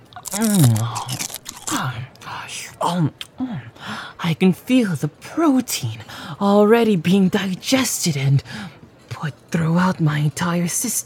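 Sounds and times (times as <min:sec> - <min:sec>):
biting and chewing crunchy chicken: 0:00.0 - 0:01.9
speech: 0:00.3 - 0:11.0.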